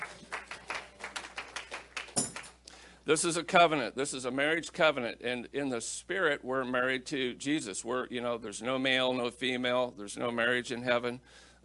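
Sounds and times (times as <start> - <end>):
audience clapping: 0.0 - 2.6
speech: 3.1 - 11.6.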